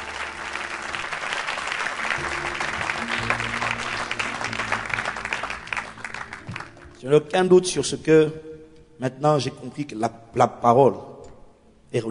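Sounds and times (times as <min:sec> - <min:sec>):
church congregation clapping during a service: 0:00.0 - 0:07.0
speech: 0:07.0 - 0:08.4, 0:09.0 - 0:11.1.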